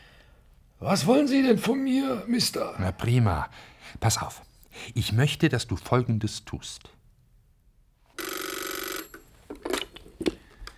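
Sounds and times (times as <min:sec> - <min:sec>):
speech: 0:00.8 - 0:07.0
telephone ringing: 0:08.2 - 0:09.6.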